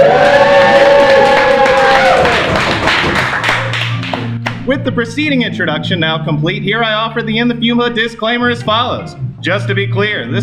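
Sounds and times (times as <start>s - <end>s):
large crowd cheering: 0.0s - 4.4s
clapping and thumping: 0.6s - 4.6s
speech: 4.8s - 10.4s.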